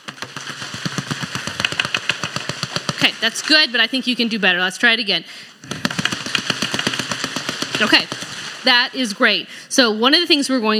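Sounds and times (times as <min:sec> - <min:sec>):
crowd drumming hands on tables or knees in a practice drum roll: 0:00.0 - 0:03.8, 0:05.6 - 0:08.9
speech: 0:03.0 - 0:05.5, 0:07.8 - 0:10.7.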